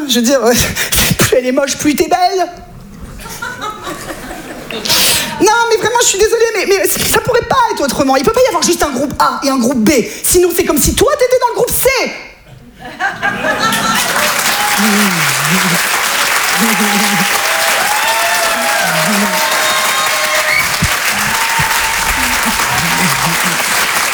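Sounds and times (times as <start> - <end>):
speech: 0.1 - 4.1, 4.7 - 12.3, 13.0 - 14.1, 14.8 - 16.0, 16.6 - 17.4, 19.0 - 19.5
laughter: 3.0 - 5.4, 12.5 - 24.1
audience applause: 13.4 - 24.1.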